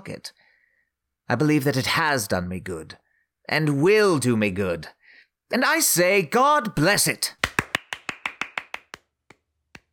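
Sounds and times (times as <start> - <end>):
speech: 0.0 - 0.4, 1.3 - 7.4
clerk clapping: 7.4 - 9.9.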